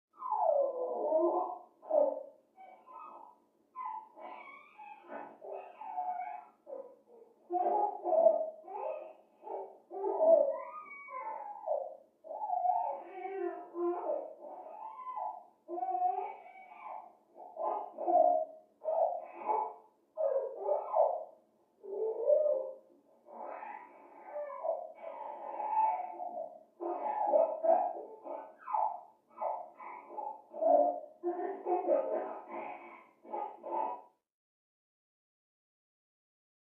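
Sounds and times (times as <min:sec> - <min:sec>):
baby squealing happily from down a hallway: 0:00.2 - 0:06.8, 0:07.5 - 0:34.0
baby laughing from down a hallway: 0:07.5 - 0:21.2, 0:23.3 - 0:34.1.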